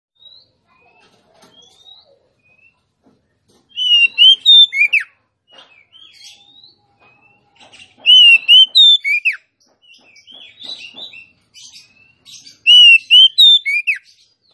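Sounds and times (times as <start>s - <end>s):
female Oriental magpie-robin singing rich whistled notes: 3.8s - 5.1s, 8.0s - 9.4s, 12.6s - 14.1s.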